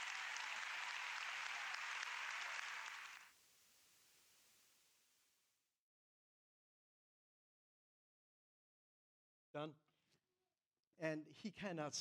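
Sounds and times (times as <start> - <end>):
studio audience applause: 0.0 - 3.3
speech: 9.5 - 9.9, 11.0 - 11.9.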